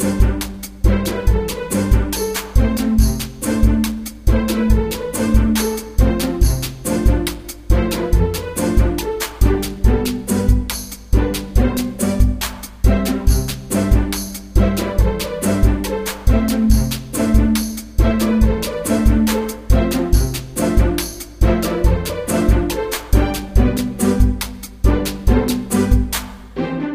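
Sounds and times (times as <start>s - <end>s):
tiny bouncy strings: 0.0s - 26.8s.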